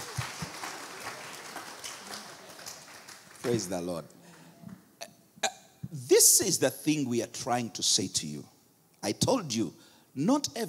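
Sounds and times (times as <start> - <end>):
audience applause: 0.0 - 4.5
speech: 3.4 - 4.2, 6.2 - 10.6.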